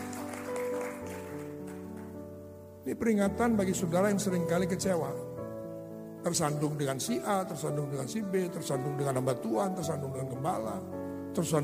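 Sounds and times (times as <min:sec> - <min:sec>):
audience applause: 0:00.0 - 0:02.1
sustained keyboard or organ chords: 0:00.0 - 0:11.6
speech: 0:02.8 - 0:05.3, 0:06.2 - 0:11.6.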